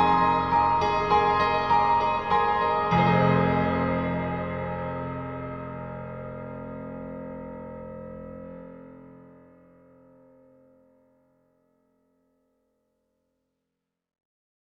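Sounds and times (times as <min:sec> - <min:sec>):
concert grand piano: 0:00.0 - 0:11.2.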